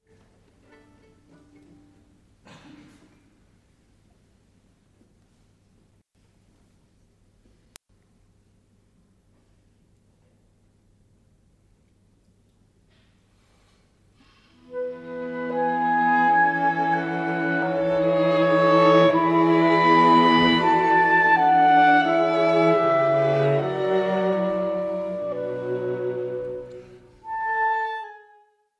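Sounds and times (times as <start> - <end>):
string quartet playing a quintet: 0.5 - 2.1, 14.7 - 28.3.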